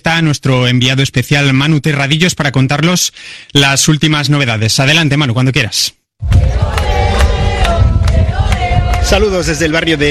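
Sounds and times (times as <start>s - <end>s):
speech: 0.2s - 7.1s, 9.0s - 10.0s
crowd cheering for Pope Leo XIV: 6.2s - 10.0s.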